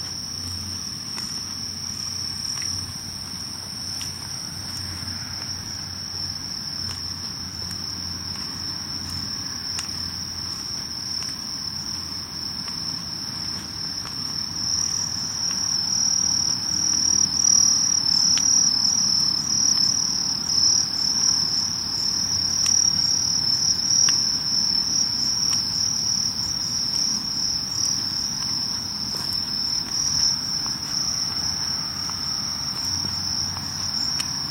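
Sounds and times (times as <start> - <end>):
insects chirring on a summer night: 0.0 - 34.5.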